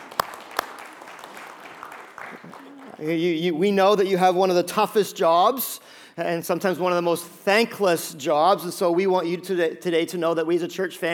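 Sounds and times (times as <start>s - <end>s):
audience applauding: 0.0s - 3.1s
speech: 2.3s - 11.1s.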